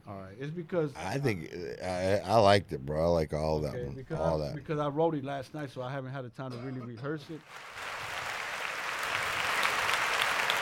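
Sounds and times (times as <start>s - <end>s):
speech: 0.3s - 8.0s
woman clapping: 8.0s - 10.6s.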